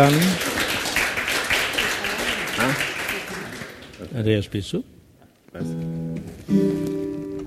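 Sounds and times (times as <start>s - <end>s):
speech: 0.0s - 0.5s, 4.1s - 7.0s
audience applause: 0.0s - 4.3s.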